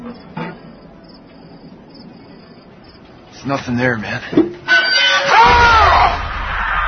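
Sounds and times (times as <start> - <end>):
speech: 3.5 - 4.7
several people screaming together: 4.7 - 6.8.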